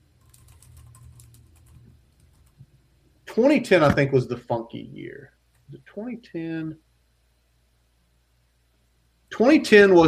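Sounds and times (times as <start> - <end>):
keyboard typing: 0.2 - 2.6
speech: 3.4 - 6.9, 9.3 - 10.0.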